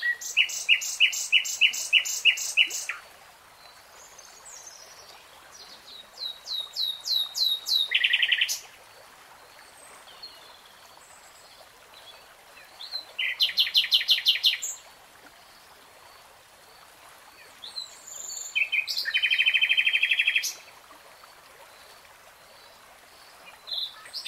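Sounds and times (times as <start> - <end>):
nightingale song: 0.0 - 8.7, 12.0 - 14.8, 17.4 - 20.6, 23.3 - 24.2.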